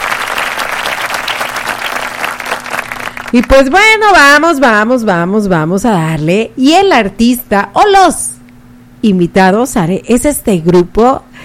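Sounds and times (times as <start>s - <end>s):
applause: 0.0s - 3.8s
speech: 3.3s - 8.3s, 9.0s - 11.4s.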